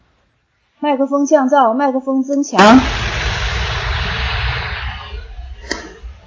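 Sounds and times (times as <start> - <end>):
speech: 0.8 - 3.0
electric fan noise picked up by microphone: 2.6 - 6.2.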